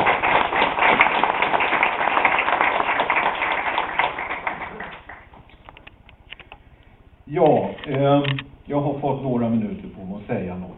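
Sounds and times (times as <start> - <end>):
audience applauding: 0.0 - 5.4
speech: 8.0 - 10.7.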